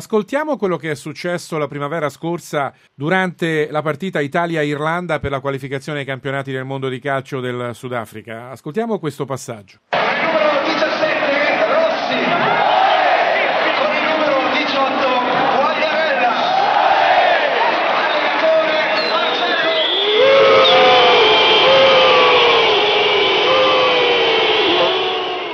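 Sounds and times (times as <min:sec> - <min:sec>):
speech: 0:00.0 - 0:10.2
stadium crowd whistling in disapproval: 0:10.0 - 0:25.5.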